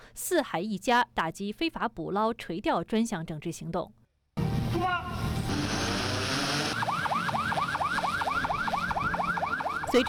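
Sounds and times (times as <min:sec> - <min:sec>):
speech: 0:00.2 - 0:04.0, 0:04.8 - 0:05.2
patrol boat electronic siren yelping: 0:05.5 - 0:10.0.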